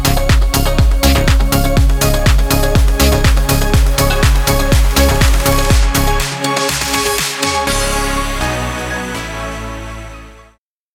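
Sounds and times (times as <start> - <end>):
kick drum sub bass: 0.0 - 8.5.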